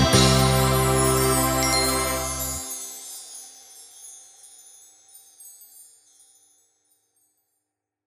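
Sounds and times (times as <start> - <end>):
piano and orchestra playing a birthday song: 0.0 - 2.8.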